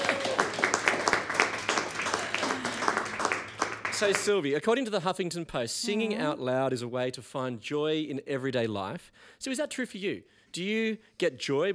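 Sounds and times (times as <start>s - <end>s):
audience applause: 0.0s - 4.5s
speech: 4.0s - 11.7s.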